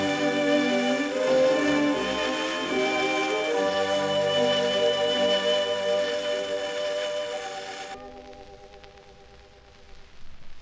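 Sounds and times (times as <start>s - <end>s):
orchestra playing instrumental version: 0.0s - 8.3s.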